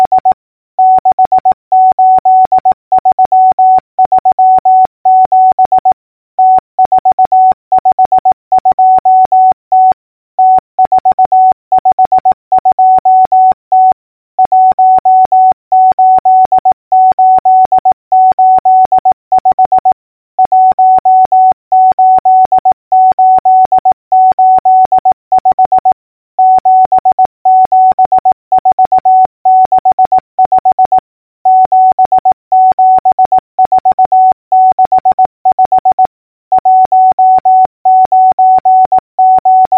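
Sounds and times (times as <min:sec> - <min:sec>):
morse code clicks: 0:00.0 - 0:39.7.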